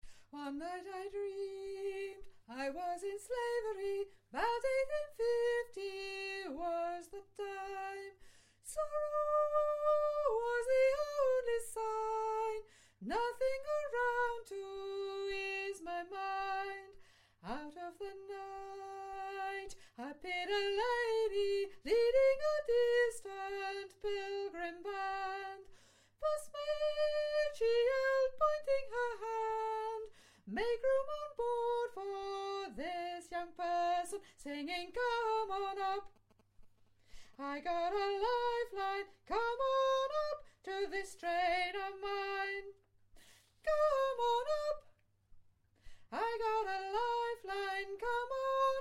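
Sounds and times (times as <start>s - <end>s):
solo soprano singing: 0.3s - 36.2s, 37.4s - 42.8s, 43.6s - 45.0s, 46.1s - 48.8s.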